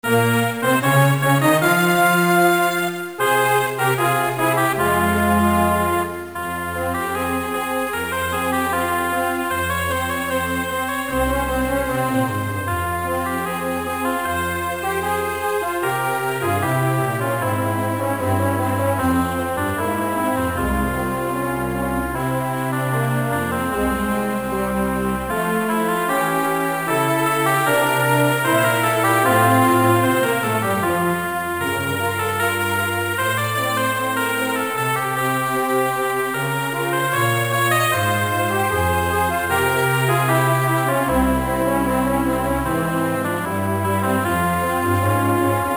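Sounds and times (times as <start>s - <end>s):
national anthem: 0.0s - 45.7s.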